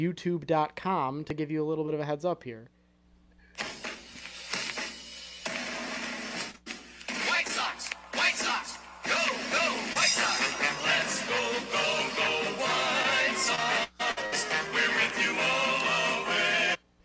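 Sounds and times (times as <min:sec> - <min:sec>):
speech: 0:00.0 - 0:02.8
baseball team's fight song: 0:03.6 - 0:16.8.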